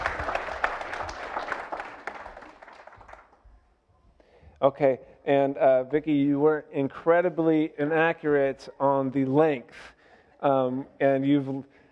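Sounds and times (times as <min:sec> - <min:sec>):
audience applause: 0:00.0 - 0:03.4
speech: 0:04.6 - 0:11.7.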